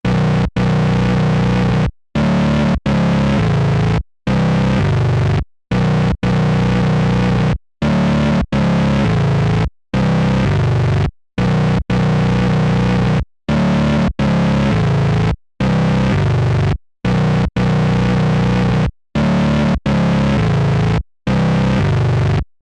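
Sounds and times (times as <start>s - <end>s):
Behringer K2 bass loop with maximum distortion and high-pass resonance: 0.0s - 22.5s.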